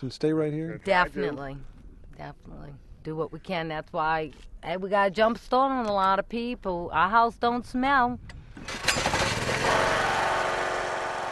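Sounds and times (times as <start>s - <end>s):
speech: 0.0s - 8.8s
generator starting up and running: 8.5s - 11.2s.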